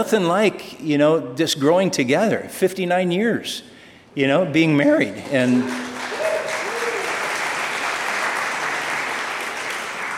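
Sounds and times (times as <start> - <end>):
speech: 0.0 - 5.9
audience applause at a church gathering: 5.3 - 10.1.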